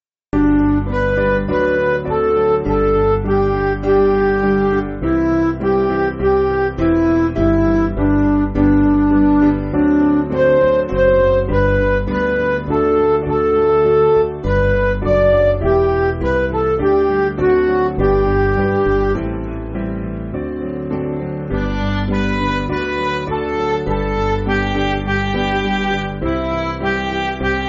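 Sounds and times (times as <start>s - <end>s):
MIDI backing music: 0.4s - 27.6s.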